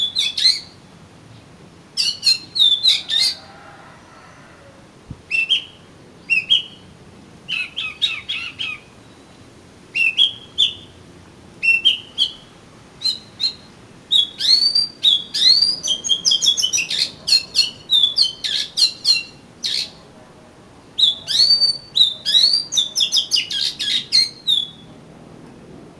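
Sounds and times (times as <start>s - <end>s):
Oriental magpie-robin whistled phrases: 0.0s - 0.8s, 2.0s - 3.4s, 5.3s - 6.8s, 7.5s - 9.2s, 9.9s - 10.9s, 11.6s - 20.0s, 21.0s - 24.9s.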